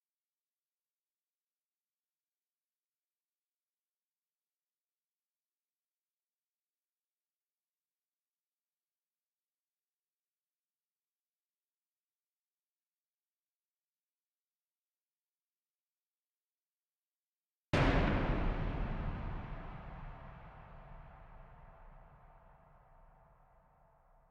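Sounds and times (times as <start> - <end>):
thunder clap: 17.8 - 23.1.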